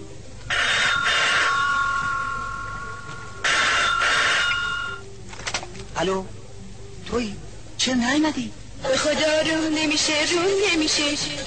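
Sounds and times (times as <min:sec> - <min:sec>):
telephone bell ringing: 0:00.5 - 0:05.0
speech: 0:06.0 - 0:06.4, 0:07.1 - 0:11.4.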